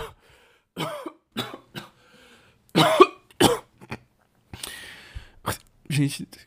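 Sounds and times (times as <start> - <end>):
speech: 0.8 - 1.0, 6.0 - 6.4
person coughing after choking on saliva: 0.8 - 2.0, 2.8 - 4.0.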